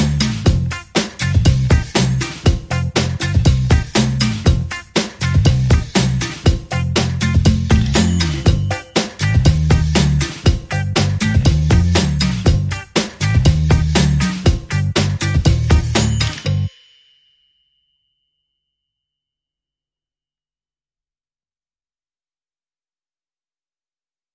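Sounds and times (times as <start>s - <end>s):
bass: 0.0s - 16.7s
drums: 0.0s - 16.7s.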